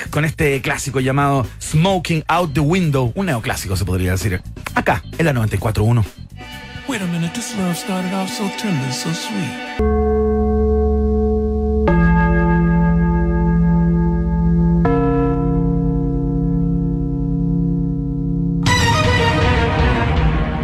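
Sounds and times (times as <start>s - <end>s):
speech: 0.2s - 6.2s, 6.9s - 10.7s
gong strike: 9.8s - 20.6s.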